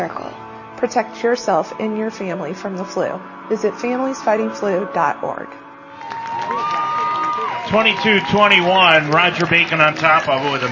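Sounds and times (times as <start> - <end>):
speech: 0.0 - 5.6, 7.7 - 10.7
stadium crowd applause: 5.9 - 10.7.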